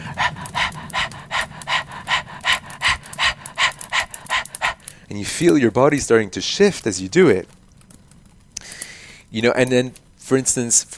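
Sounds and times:
rapid fire breath breathing exercise: 0.0s - 5.6s, 8.6s - 9.3s
speech: 5.1s - 7.6s, 9.3s - 10.9s.

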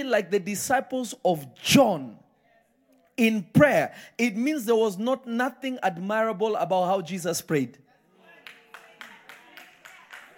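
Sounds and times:
speech: 0.0s - 2.2s, 3.2s - 7.8s
audience clapping: 8.2s - 10.3s.

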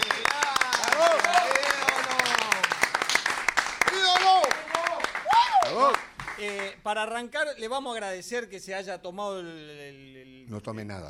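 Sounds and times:
audience applause: 0.0s - 6.7s
speech: 6.8s - 11.0s.

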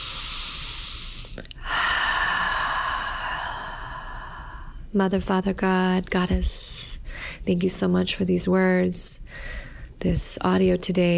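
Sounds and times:
deep breath taken before a short spoken prayer: 0.0s - 4.9s, 7.1s - 7.4s, 9.3s - 10.0s
speech: 4.9s - 11.1s.

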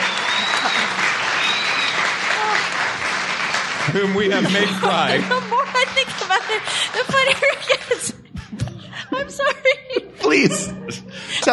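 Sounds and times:
audience applause: 0.0s - 8.1s
laughter: 0.0s - 11.5s
speech: 3.9s - 8.2s, 9.2s - 11.5s.

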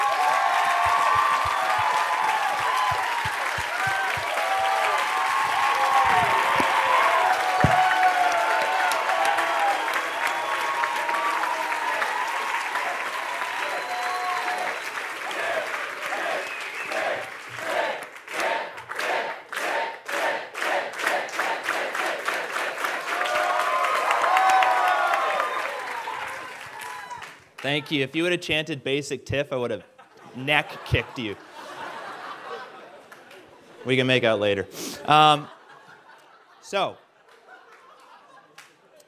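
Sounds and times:
audience applause: 0.0s - 27.6s
speech: 27.7s - 31.5s, 33.8s - 35.5s, 36.7s - 37.0s
laughter: 29.8s - 34.1s, 35.1s - 39.0s.

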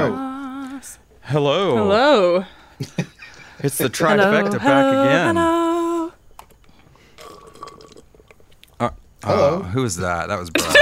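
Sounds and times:
speech: 0.8s - 5.6s, 8.8s - 10.8s
slurping bottom of a big soda cup: 7.0s - 8.4s.

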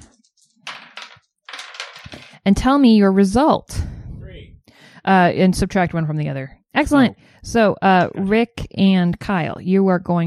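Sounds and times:
two dice rolling and rattling: 0.4s - 2.4s
speech: 2.4s - 3.7s, 5.0s - 10.2s.

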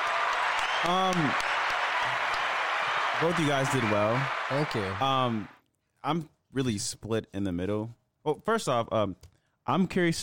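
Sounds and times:
applause: 0.0s - 5.6s
speech: 0.8s - 2.2s, 3.2s - 10.2s.

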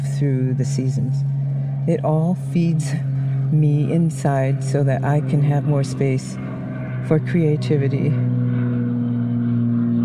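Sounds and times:
airplane flying overhead: 0.0s - 10.0s
speech: 0.2s - 8.4s.

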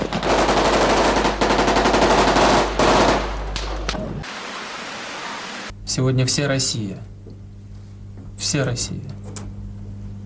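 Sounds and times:
automatic gunfire bursts: 0.0s - 3.5s
speech: 6.0s - 7.1s, 8.5s - 9.2s.

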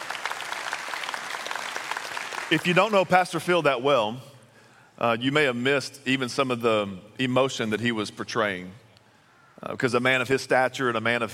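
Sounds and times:
audience clapping: 0.0s - 3.4s
speech: 2.5s - 4.3s, 5.0s - 8.8s, 9.6s - 11.3s.

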